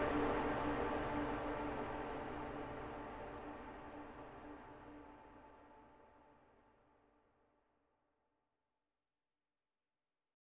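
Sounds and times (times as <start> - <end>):
string quartet: 0.0 - 3.3.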